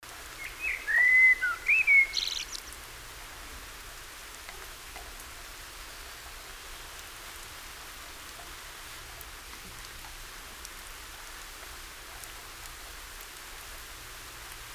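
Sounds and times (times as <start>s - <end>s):
common blackbird Turdus merula whistling: 0.4s - 2.7s.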